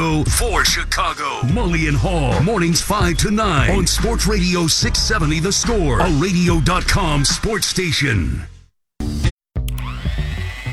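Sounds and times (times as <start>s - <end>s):
speech: 0.0s - 8.5s
new stand mixer whipping cookie dough: 9.7s - 10.7s.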